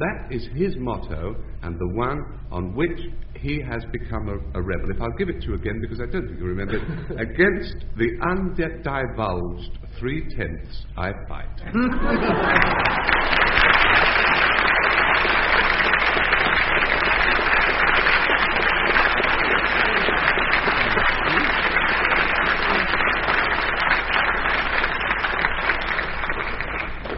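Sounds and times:
speech: 0:00.0 - 0:13.5
laughter: 0:06.6 - 0:07.5, 0:11.6 - 0:13.8, 0:19.4 - 0:23.2
audience applause: 0:12.1 - 0:27.1.

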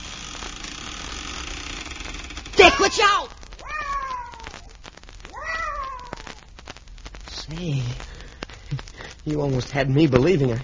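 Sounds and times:
cat meowing in drawn-out wavering cries: 0:02.6 - 0:06.5
speech: 0:02.8 - 0:03.4, 0:07.5 - 0:08.1, 0:09.2 - 0:10.6.

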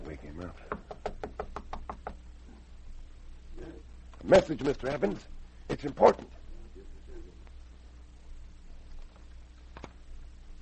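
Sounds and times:
faint noise: 0:00.0 - 0:10.5
soft knocking on a door: 0:00.7 - 0:02.2
speech: 0:04.3 - 0:06.4.

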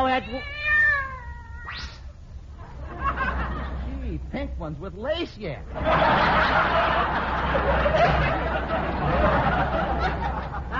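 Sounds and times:
cat meowing: 0:00.0 - 0:02.1
speech: 0:00.2 - 0:00.6, 0:04.4 - 0:09.6
laughter: 0:02.6 - 0:04.2, 0:05.7 - 0:10.7.

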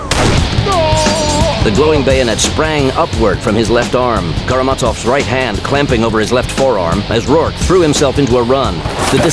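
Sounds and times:
revolver gunshot: 0:00.1 - 0:01.4
speech: 0:01.7 - 0:09.3.

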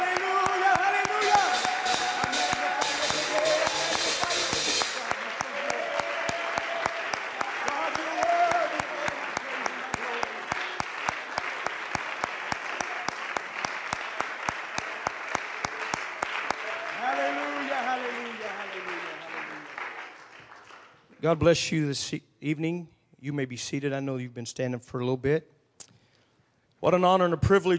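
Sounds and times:
congregation clapping in praise at a Pentecostal church service in Buford, Georgia: 0:00.0 - 0:21.3
speech: 0:21.3 - 0:25.6, 0:26.8 - 0:27.7.

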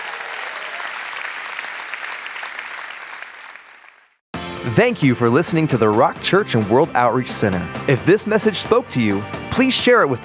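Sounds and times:
audience applauding: 0:00.0 - 0:04.2
speech: 0:04.6 - 0:10.2.

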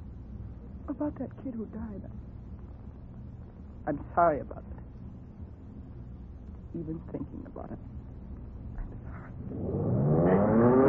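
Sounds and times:
speech: 0:00.9 - 0:02.3, 0:03.9 - 0:04.9, 0:06.8 - 0:08.0, 0:09.5 - 0:09.9
airplane engine restarting during a dive: 0:09.4 - 0:10.8.

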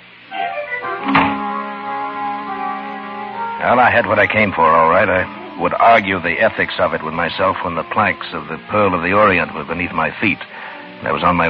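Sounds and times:
musical drone: 0:00.0 - 0:11.4
double door closing thud: 0:01.1 - 0:01.4
speech: 0:03.6 - 0:11.4.

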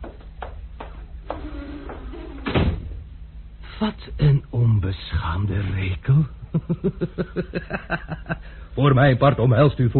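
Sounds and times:
door being closed: 0:00.0 - 0:03.1
speech: 0:03.8 - 0:09.9
laughter: 0:06.5 - 0:08.6.

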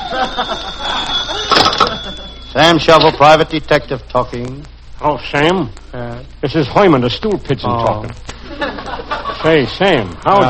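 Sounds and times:
laughter: 0:00.0 - 0:02.4, 0:08.3 - 0:10.4
telephone ringing: 0:00.0 - 0:03.4
speech: 0:00.1 - 0:01.1, 0:02.6 - 0:10.4.

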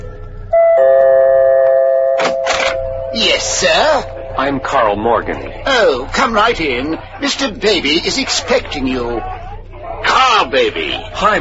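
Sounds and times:
doorbell chime at front door: 0:00.0 - 0:04.9
speech: 0:03.1 - 0:09.3, 0:10.4 - 0:11.3.

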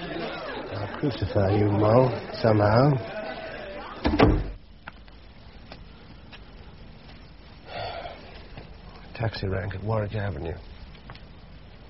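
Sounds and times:
laughter: 0:00.0 - 0:04.0
speech: 0:01.0 - 0:03.2, 0:09.2 - 0:10.7
door opening: 0:04.0 - 0:04.6.

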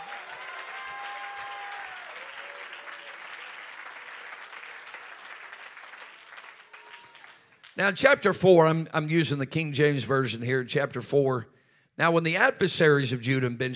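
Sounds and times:
audience clapping hands: 0:00.0 - 0:08.0
speech: 0:07.8 - 0:13.7.

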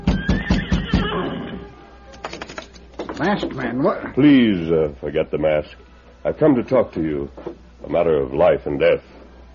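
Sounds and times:
horse neighing: 0:00.1 - 0:01.7
speech: 0:03.2 - 0:09.1.

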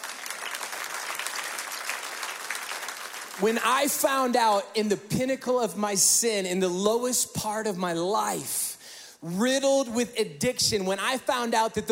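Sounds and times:
audience clapping: 0:00.0 - 0:04.0
speech: 0:03.4 - 0:11.9.

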